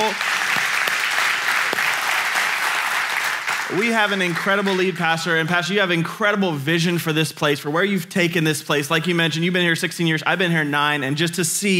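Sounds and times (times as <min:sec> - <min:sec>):
crowd applauding: 0:00.0 - 0:05.4
speech: 0:03.7 - 0:11.7.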